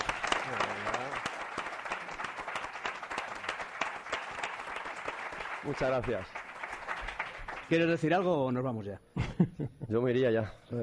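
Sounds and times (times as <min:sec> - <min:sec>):
audience applause: 0:00.0 - 0:08.3
speech: 0:05.6 - 0:06.4, 0:07.7 - 0:10.8.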